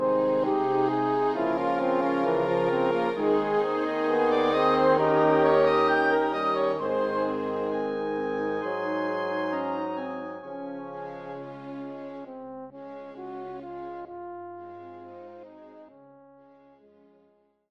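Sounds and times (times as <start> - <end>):
nocturne: 0.0 - 12.5.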